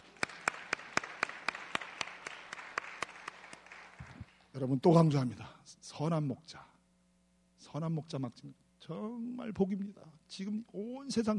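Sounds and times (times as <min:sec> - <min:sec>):
audience applause: 0:00.0 - 0:04.4
speech: 0:04.6 - 0:06.7, 0:07.7 - 0:11.3.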